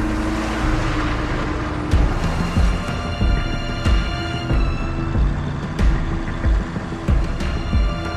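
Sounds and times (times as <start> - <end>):
transport truck engine droning on a snow-covered road: 0.0 - 8.1
sharp knocks and clanks from a transport truck: 1.8 - 8.1.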